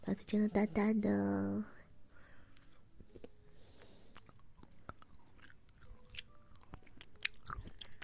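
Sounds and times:
speech: 0:00.0 - 0:01.8
soft chewing and biting on food: 0:02.6 - 0:08.0.

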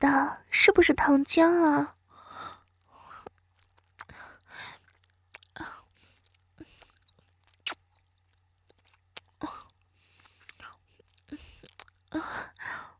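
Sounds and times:
speech: 0:00.0 - 0:02.0
eating and sucking on a large ice pop: 0:02.6 - 0:12.1.

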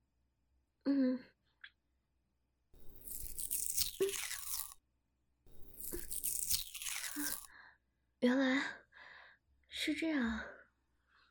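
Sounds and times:
speech: 0:00.9 - 0:01.3, 0:08.2 - 0:08.8, 0:09.8 - 0:10.6
stickers peeled off a chocolate-coated dessert: 0:02.8 - 0:04.8, 0:05.5 - 0:07.5.

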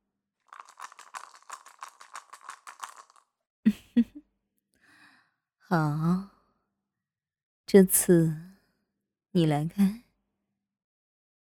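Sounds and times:
dice being shaken and rolled: 0:00.4 - 0:03.3
speech: 0:04.0 - 0:04.2, 0:05.7 - 0:06.3, 0:07.7 - 0:08.4, 0:09.3 - 0:10.0.

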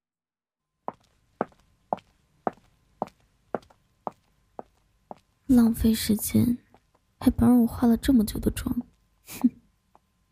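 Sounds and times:
footsteps of a person walking away: 0:00.9 - 0:05.4
speech: 0:05.5 - 0:06.6, 0:07.2 - 0:09.6.

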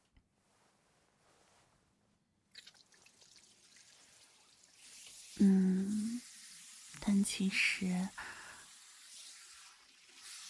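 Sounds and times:
hot water running and rinsing over someone: 0:02.5 - 0:10.4
speech: 0:05.4 - 0:05.7, 0:07.3 - 0:08.3.

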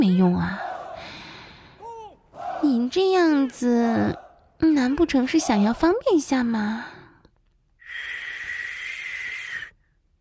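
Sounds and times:
speech: 0:00.2 - 0:00.6, 0:02.7 - 0:07.0
long whistle: 0:07.9 - 0:09.8.

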